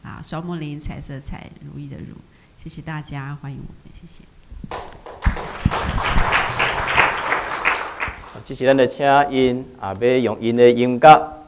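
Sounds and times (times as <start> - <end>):
speech: 0.2 - 4.8, 8.4 - 11.4
audience at a church gathering applauding: 4.7 - 8.6.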